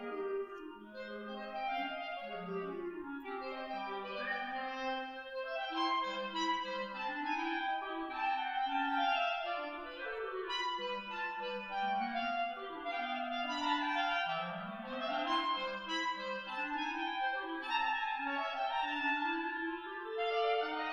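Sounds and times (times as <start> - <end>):
clarinet duet: 0.0 - 20.9.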